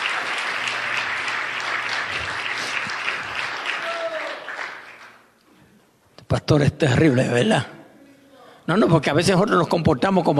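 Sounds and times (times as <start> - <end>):
church audience applause: 0.0 - 5.2
speech: 6.3 - 7.8, 8.7 - 10.3.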